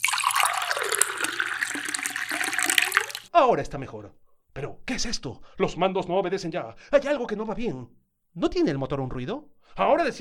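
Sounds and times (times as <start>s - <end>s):
rushing water: 0.0s - 3.3s
speech: 3.4s - 10.2s.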